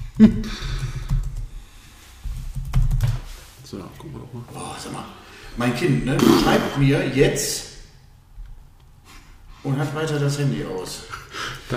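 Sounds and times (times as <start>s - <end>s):
speech: 0.2s - 0.8s, 4.8s - 7.7s, 9.6s - 11.7s
typing on a computer keyboard: 0.7s - 1.5s, 2.5s - 3.3s.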